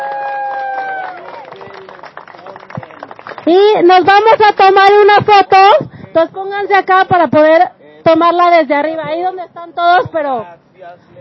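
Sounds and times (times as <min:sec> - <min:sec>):
group applauding: 0:00.0 - 0:04.7
speech: 0:03.5 - 0:11.1.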